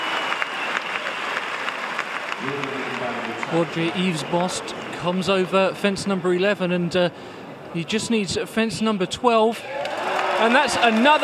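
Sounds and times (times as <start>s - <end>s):
German crowd applauding at a show jumping event: 0.0s - 5.6s, 9.6s - 11.2s
speech: 2.4s - 9.8s, 10.4s - 11.2s.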